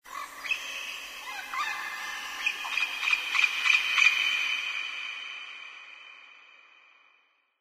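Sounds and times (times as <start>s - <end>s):
bird call: 0.1s - 4.7s.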